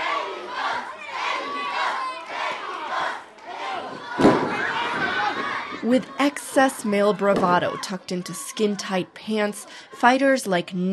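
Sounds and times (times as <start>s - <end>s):
excited crowd roaring and shouting at a lucha libre ring: 0.0s - 9.7s
sharp thud: 4.1s - 5.0s
speech: 5.8s - 10.9s.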